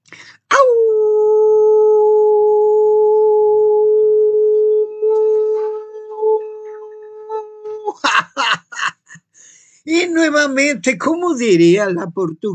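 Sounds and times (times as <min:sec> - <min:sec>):
person imitating a wolf howl: 0:00.5 - 0:08.2
laughter: 0:07.8 - 0:09.2
speech: 0:10.2 - 0:12.5.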